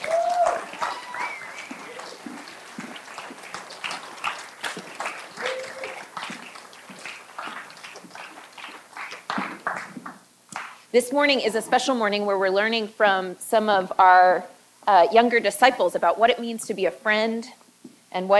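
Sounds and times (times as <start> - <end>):
crowd whooping and shouting: 0.0 - 6.4
crowd applauding: 0.0 - 10.8
speech: 10.9 - 18.3.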